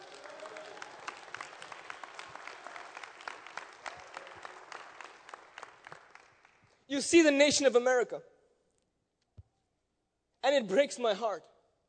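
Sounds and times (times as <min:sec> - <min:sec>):
audience applauding: 0:00.0 - 0:06.8
speech: 0:06.9 - 0:08.3, 0:10.6 - 0:11.5.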